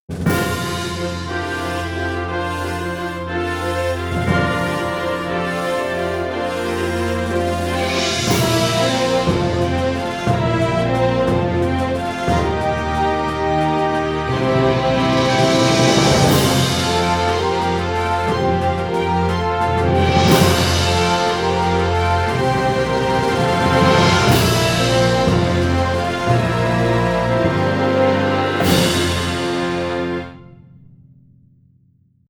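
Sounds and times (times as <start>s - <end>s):
fanfare: 0.1s - 30.4s.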